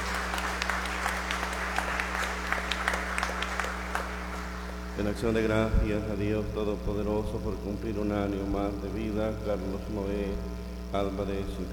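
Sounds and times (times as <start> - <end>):
audience applause: 0.0 - 5.1
low constant hum: 0.0 - 11.7
speech: 5.0 - 11.7.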